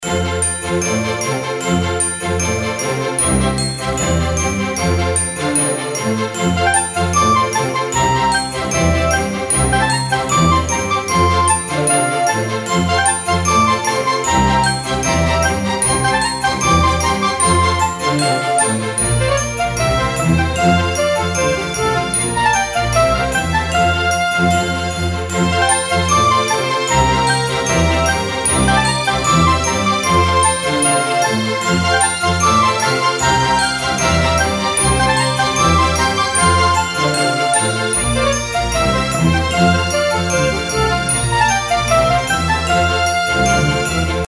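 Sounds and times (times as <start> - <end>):
snowman minigame background music: 0.2 - 44.2.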